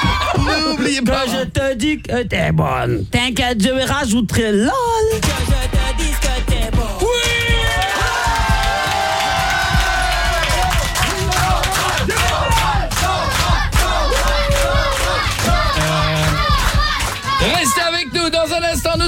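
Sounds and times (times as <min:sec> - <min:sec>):
crowd cheering and shouting: 0:00.0 - 0:00.8, 0:07.0 - 0:18.8
speech: 0:00.8 - 0:05.8
crowd applauding: 0:07.6 - 0:17.7.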